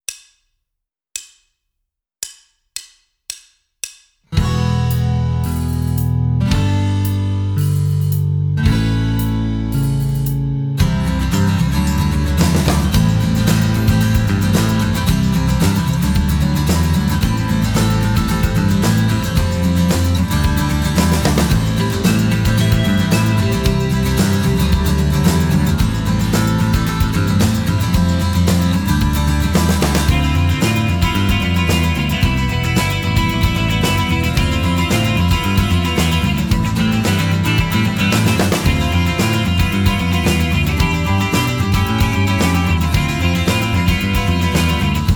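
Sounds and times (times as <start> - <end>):
rhythm guitar: 4.3 - 45.1.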